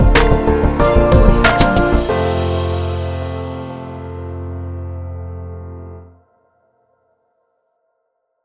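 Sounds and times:
atmospheric pop music: 0:00.0 - 0:06.0.

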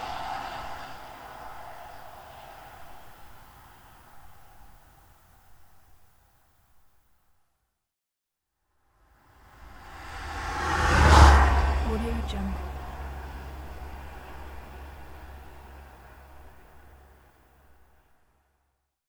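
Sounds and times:
car whoosh: 0:00.0 - 0:04.8, 0:09.4 - 0:17.3.

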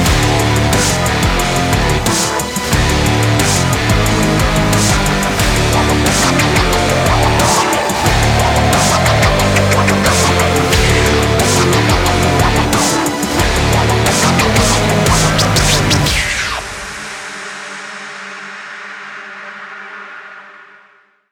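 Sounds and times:
aggressive sport commercial music: 0:00.0 - 0:17.4.

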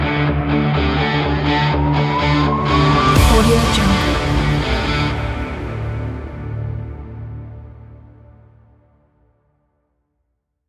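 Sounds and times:
energetic extreme action sport music: 0:00.8 - 0:07.7.

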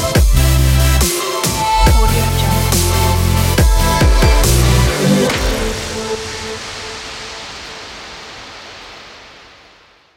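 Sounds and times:
future bass music: 0:00.0 - 0:06.6.

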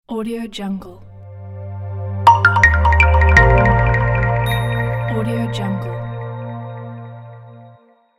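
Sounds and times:
inspiring logo jingle: 0:01.7 - 0:07.0.

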